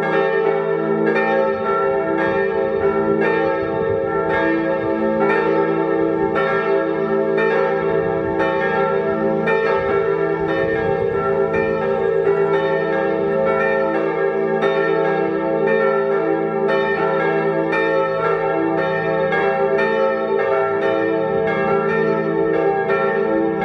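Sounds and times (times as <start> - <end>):
bells ringing: 0.0 - 23.6.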